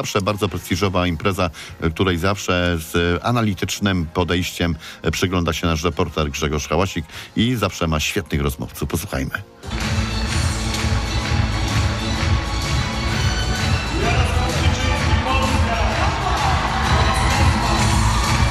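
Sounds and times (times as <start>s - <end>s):
speech: 0.0s - 9.8s
crowd applauding at Torwar in Warsaw: 9.7s - 18.4s.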